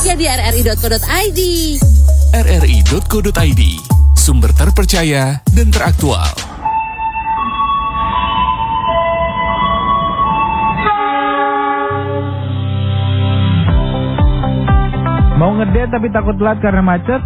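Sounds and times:
speech: 0.0 - 6.5, 15.6 - 17.2
multi-toned commuter train horn: 6.8 - 14.6.

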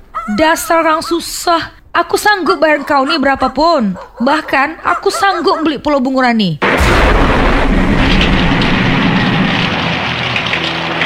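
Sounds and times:
speech: 0.3 - 8.1
thunder and lightning crashing: 6.6 - 11.0.

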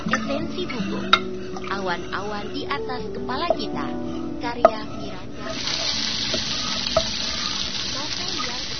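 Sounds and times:
speech: 0.1 - 6.4
food frying in a pan: 5.4 - 8.7.

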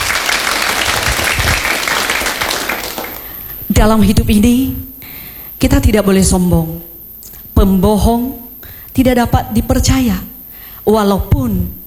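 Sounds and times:
audience applause: 0.0 - 3.4
speech: 3.8 - 4.9, 5.6 - 6.9, 7.6 - 8.4, 9.0 - 11.8.

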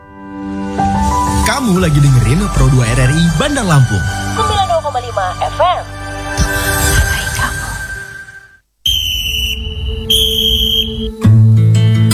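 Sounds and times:
lower sustained tone: 0.6 - 12.1
speech: 1.6 - 4.5, 5.1 - 6.0
referee whistle blasts: 4.6 - 11.3.

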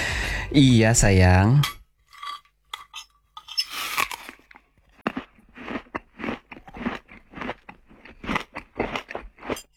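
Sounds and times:
speech: 0.5 - 1.8
crunchy chewing while eating a meal: 3.6 - 9.7.

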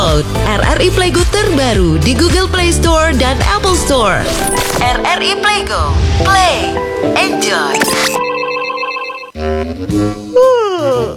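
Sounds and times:
speech: 0.2 - 8.3, 9.4 - 11.1
person yawning: 10.4 - 11.1.

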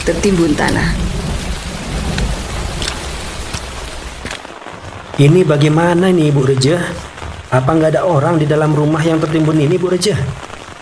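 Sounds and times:
speech: 0.0 - 1.1, 5.2 - 10.5
low rumble: 0.0 - 4.4
steady light drizzle at dawn: 0.0 - 10.8.

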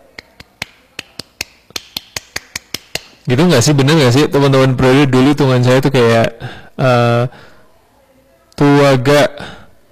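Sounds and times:
scout rhythmic clapping pattern: 0.0 - 3.3
speech: 3.3 - 7.5, 8.6 - 9.6.

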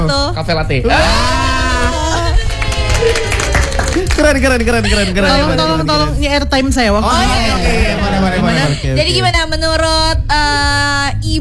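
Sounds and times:
speech: 0.4 - 2.0, 4.2 - 11.3
applause: 2.3 - 4.6.

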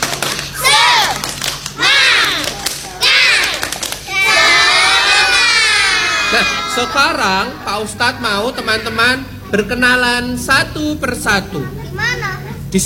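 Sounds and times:
children clapping a rhythmic spirit cheer: 0.0 - 6.7
children chanting a rhythmic spirit cheer in unison: 0.0 - 9.2
children's sustained shouted cheer: 0.5 - 1.2, 1.8 - 7.2
speech: 6.4 - 12.1.

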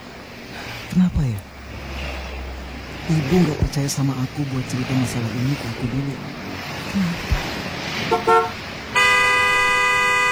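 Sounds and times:
low road rumble: 0.0 - 10.3
speech: 1.0 - 1.5, 3.1 - 7.2
car horn honking: 8.0 - 10.3.

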